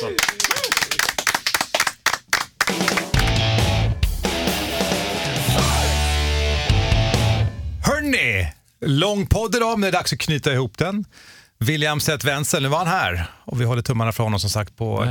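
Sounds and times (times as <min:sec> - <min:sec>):
hand clapping from a small group: 0:00.0 - 0:03.7
music with a strong low beat: 0:03.1 - 0:07.8
speech: 0:08.2 - 0:15.0.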